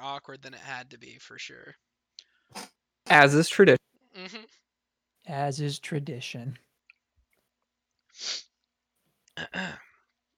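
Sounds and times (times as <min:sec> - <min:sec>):
speech: 0:00.2 - 0:01.9, 0:02.5 - 0:04.6, 0:05.2 - 0:06.7, 0:08.2 - 0:08.5, 0:09.4 - 0:09.9
person choking on inhaled iced tea: 0:09.4 - 0:09.9.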